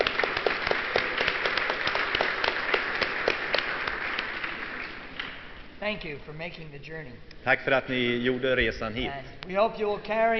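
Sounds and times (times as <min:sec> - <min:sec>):
audience applause: 0:00.0 - 0:05.4
speech: 0:05.9 - 0:10.3.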